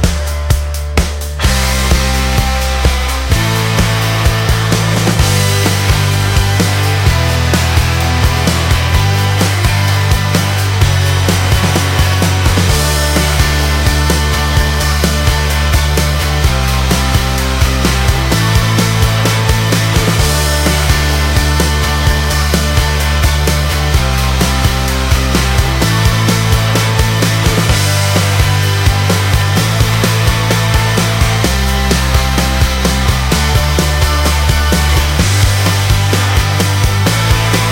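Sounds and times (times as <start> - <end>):
epic rock music: 0.0 - 37.7.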